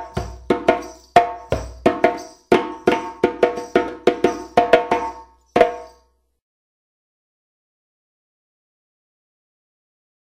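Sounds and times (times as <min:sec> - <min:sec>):
djembe: 0:00.0 - 0:06.0.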